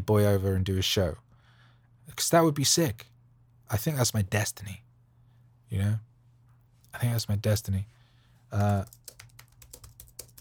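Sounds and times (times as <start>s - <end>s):
speech: 0.0s - 1.2s, 2.1s - 3.1s, 3.7s - 4.8s, 5.7s - 6.1s, 6.9s - 9.0s
typing on a computer keyboard: 8.6s - 10.3s.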